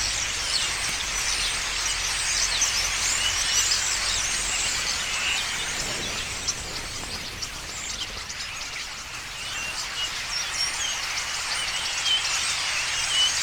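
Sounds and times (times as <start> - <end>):
starlings chattering in the evening: 0.0 - 13.4.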